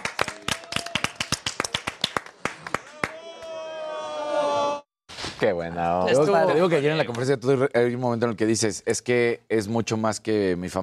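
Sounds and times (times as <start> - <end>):
audience applauding: 0.0 - 3.5
speech: 5.4 - 10.8.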